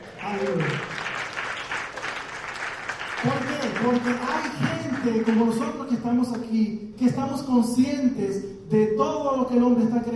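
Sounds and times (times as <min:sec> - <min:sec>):
audience applause: 0:00.0 - 0:05.6
speech: 0:03.2 - 0:10.1.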